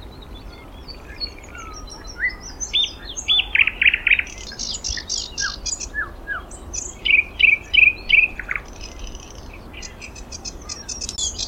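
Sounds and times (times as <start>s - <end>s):
thrush nightingale singing: 0.0s - 11.4s.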